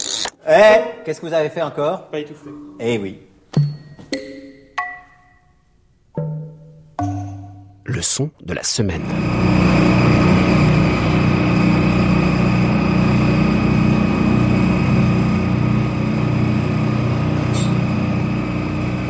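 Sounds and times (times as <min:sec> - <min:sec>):
speech: 0:00.5 - 0:03.3, 0:08.0 - 0:09.9
droning roar of an engine: 0:09.0 - 0:19.0.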